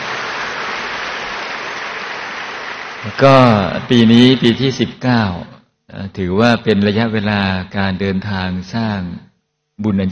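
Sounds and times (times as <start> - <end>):
crowd applauding: 0.0 - 4.0
speech: 3.0 - 10.1.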